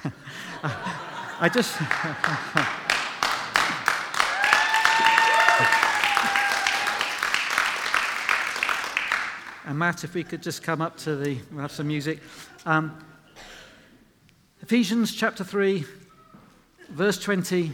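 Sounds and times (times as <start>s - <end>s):
speech: 0.0s - 2.8s, 9.7s - 13.1s, 14.7s - 16.0s, 16.9s - 17.7s
chuckles and voices: 0.0s - 3.0s, 9.8s - 13.3s
audience clapping: 0.0s - 9.8s.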